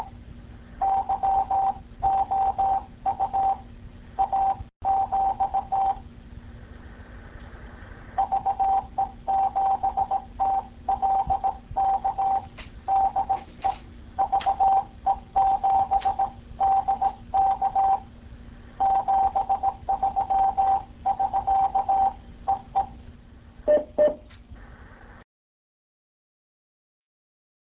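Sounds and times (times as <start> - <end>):
morse code beeps: 0.8 - 3.6, 4.2 - 6.0, 8.2 - 18.1, 18.8 - 23.0, 23.7 - 24.3.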